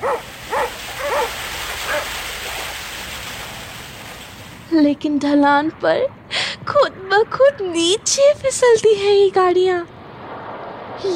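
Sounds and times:
sled dogs barking: 0:00.0 - 0:02.1
speech: 0:04.7 - 0:09.9.

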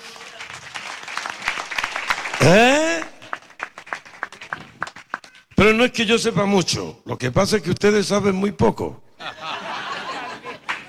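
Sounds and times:
audience applause: 0:00.0 - 0:05.5
speech: 0:02.4 - 0:02.7, 0:05.7 - 0:09.0
laughter: 0:09.2 - 0:10.8.

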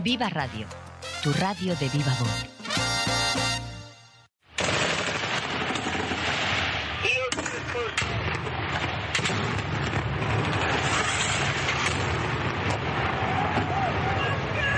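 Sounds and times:
speech: 0:00.0 - 0:02.6
heavy gunfire as marines repel a Taliban attack in Afghanistan: 0:04.5 - 0:14.6.

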